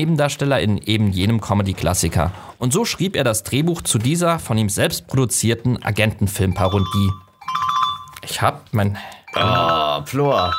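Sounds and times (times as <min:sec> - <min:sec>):
speech: 0:00.0 - 0:07.6, 0:08.2 - 0:10.5
mobile phone ringing: 0:06.4 - 0:08.3, 0:09.2 - 0:10.5.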